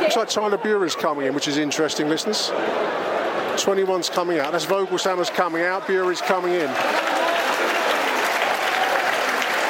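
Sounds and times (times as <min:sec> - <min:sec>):
speech: 0:00.1 - 0:07.0
stadium crowd applause: 0:04.1 - 0:09.6.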